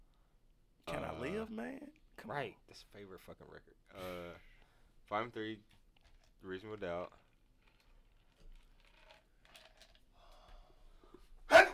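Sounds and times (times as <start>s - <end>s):
speech: 1.2s - 4.5s, 5.1s - 5.8s, 6.4s - 7.2s
soft breaths: 10.1s - 11.4s
sneeze: 11.5s - 11.7s.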